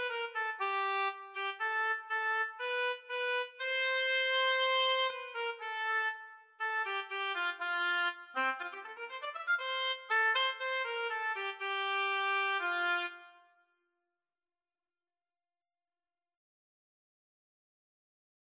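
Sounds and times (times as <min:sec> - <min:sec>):
oboe in a duet with clarinet: 0:00.0 - 0:13.5
clarinet in a duet with oboe: 0:00.0 - 0:13.6.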